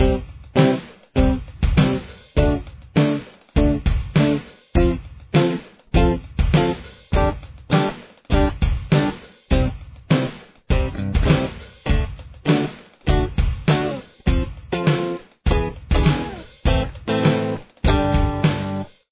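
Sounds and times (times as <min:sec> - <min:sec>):
chorus guitar: 0:00.0 - 0:19.0.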